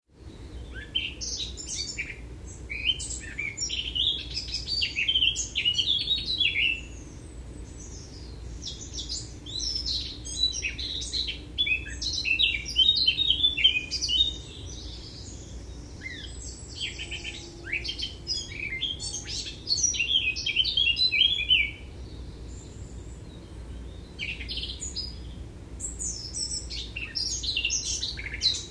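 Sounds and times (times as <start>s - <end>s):
Eurasian blackcap song: 0.2s - 28.6s.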